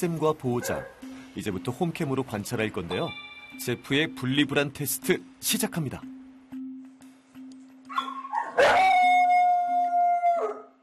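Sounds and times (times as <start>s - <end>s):
speech: 0.0s - 6.2s
dog whining yelps: 7.9s - 9.5s
dog howling: 8.0s - 10.8s.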